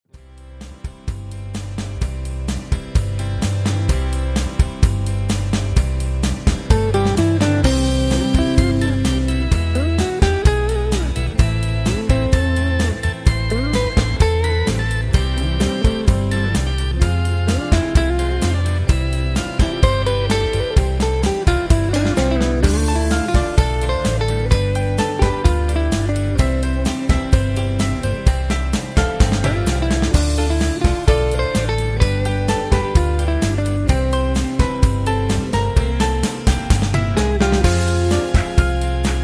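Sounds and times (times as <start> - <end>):
instrumental music: 0.1 - 39.2.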